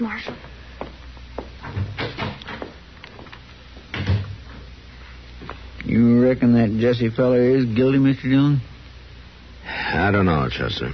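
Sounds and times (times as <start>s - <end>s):
door thumping shut: 1.7s - 2.7s, 3.9s - 4.4s
speech: 6.0s - 8.7s, 9.9s - 10.9s.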